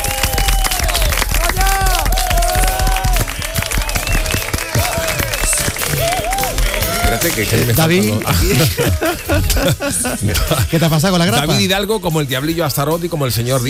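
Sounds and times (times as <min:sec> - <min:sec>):
brief cheers: 0:00.0 - 0:07.5
audience applauding: 0:00.0 - 0:09.8
laughter: 0:04.6 - 0:11.6
speech: 0:07.2 - 0:13.6.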